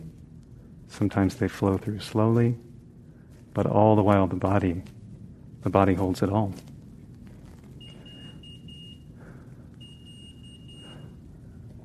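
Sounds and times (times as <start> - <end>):
low rumble: 0.0 - 11.8
speech: 0.9 - 2.7, 3.6 - 5.0, 5.6 - 6.7
diabetes device alert beeps: 7.8 - 9.1, 9.8 - 11.1.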